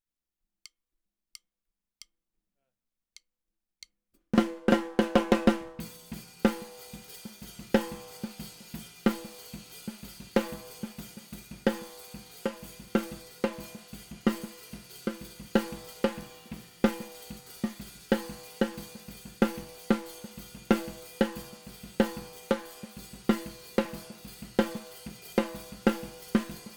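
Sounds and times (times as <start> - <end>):
snare drum: 4.4 - 26.7.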